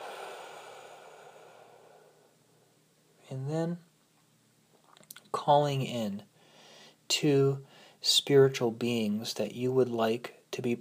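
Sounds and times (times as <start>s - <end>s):
long soft breath during a guided meditation: 0.0s - 2.6s, 6.4s - 7.0s, 7.7s - 8.0s
speech: 3.3s - 3.9s, 5.5s - 6.3s, 7.1s - 10.8s.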